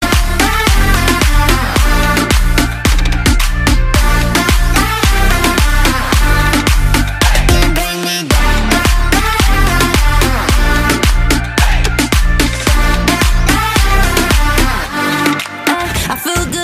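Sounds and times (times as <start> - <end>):
electro ringtone: 0.0 - 16.5.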